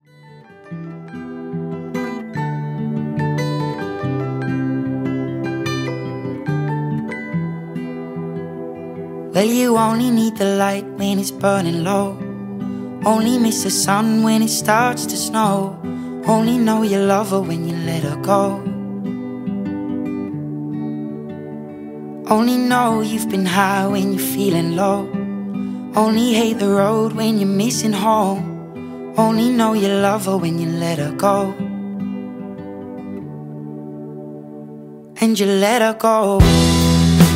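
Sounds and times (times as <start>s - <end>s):
contemporary solo music: 1.3s - 37.2s.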